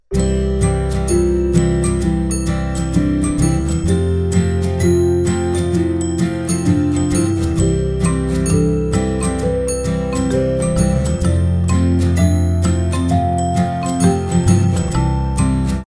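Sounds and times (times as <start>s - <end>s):
toy piano: 0.1s - 15.8s.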